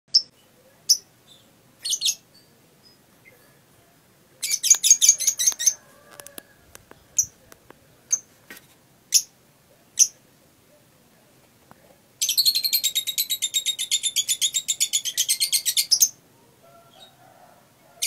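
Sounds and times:
lovebird chirping and trilling: 0.1s - 7.4s, 8.0s - 8.3s, 9.1s - 10.2s, 12.2s - 17.2s.

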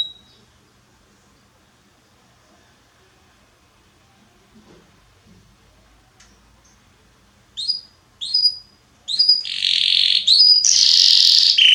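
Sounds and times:
Belgian canary chirping: 0.0s - 0.5s, 7.6s - 11.7s.

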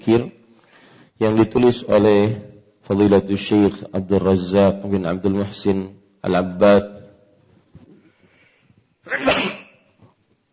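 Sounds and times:
speech: 0.0s - 0.4s, 1.2s - 6.9s, 9.0s - 9.4s
sneeze: 9.1s - 10.0s.

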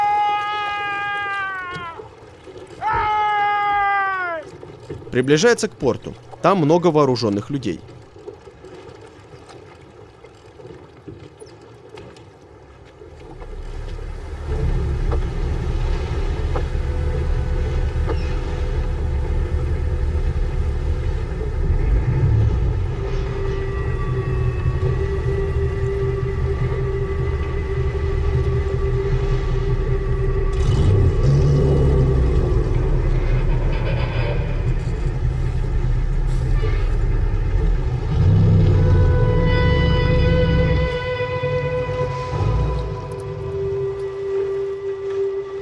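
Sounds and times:
boat engine: 0.0s - 45.6s
speech: 5.2s - 8.0s
car engine rumble: 13.2s - 41.0s.

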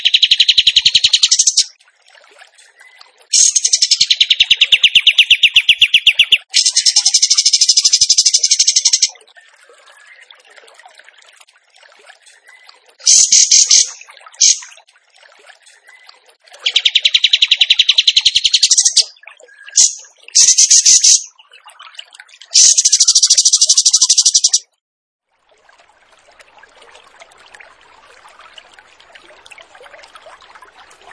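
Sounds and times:
bird singing buzzy bursts and pulsing trill: 0.0s - 1.7s, 3.4s - 9.1s, 13.1s - 14.6s, 16.7s - 19.1s, 19.7s - 21.3s, 22.6s - 24.6s.

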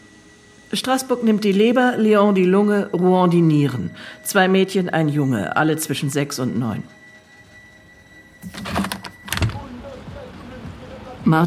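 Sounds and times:
speech: 0.7s - 7.0s, 11.3s - 11.4s
office window being opened: 8.4s - 9.7s
shuffling: 8.4s - 10.8s.

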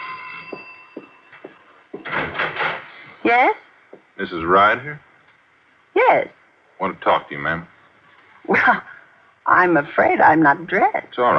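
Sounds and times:
doorbell ringing: 0.0s - 2.3s
speech: 3.3s - 3.6s, 4.2s - 5.1s, 6.1s - 7.7s, 8.5s - 8.9s, 9.5s - 11.3s.

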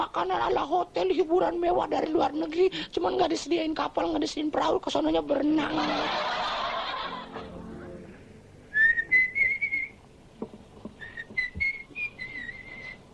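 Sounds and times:
speech: 0.0s - 6.6s
laughter: 5.6s - 8.0s
woman whistling: 8.8s - 10.0s, 11.0s - 13.0s.

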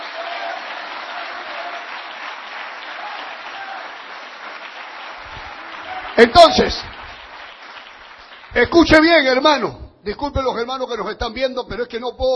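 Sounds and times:
church audience clapping hands in praise during a worship service: 0.0s - 8.8s
speech: 6.2s - 7.0s, 8.6s - 12.3s.

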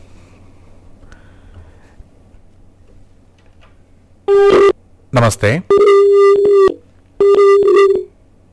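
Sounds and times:
telephone line tone during a phone-in call that is breaking up: 4.3s - 4.8s, 5.7s - 8.2s
speech: 5.2s - 5.8s.

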